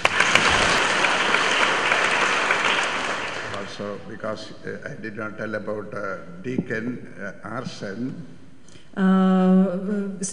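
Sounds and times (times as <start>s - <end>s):
audience clapping: 0.0s - 4.0s
speech: 3.8s - 8.4s, 9.0s - 10.3s.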